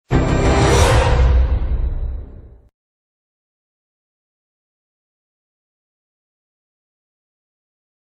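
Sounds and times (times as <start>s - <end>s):
scary sound: 0.0s - 2.7s.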